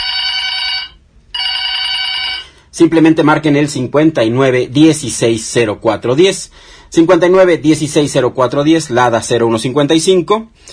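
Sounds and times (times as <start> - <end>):
telephone ringing with trilling metallic chiming: 0.0 - 2.6
speech: 2.8 - 10.7.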